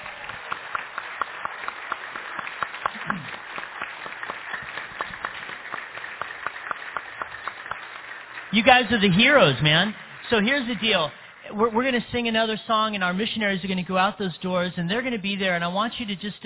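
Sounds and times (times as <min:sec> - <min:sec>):
audience applauding: 0:00.0 - 0:12.2
speech: 0:08.6 - 0:16.4.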